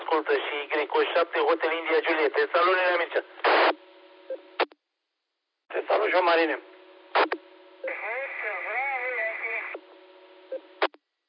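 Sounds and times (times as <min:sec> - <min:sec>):
speech: 0:00.1 - 0:03.8, 0:05.9 - 0:06.7
radio transmission clicks: 0:07.2 - 0:09.8
parrot voice heard over crackly radio channel: 0:07.9 - 0:09.7.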